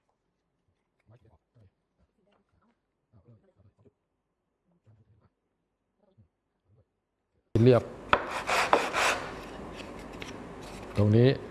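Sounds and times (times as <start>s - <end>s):
speech: 7.6s - 8.5s, 11.0s - 11.4s
hand sanding of wood: 8.1s - 9.6s.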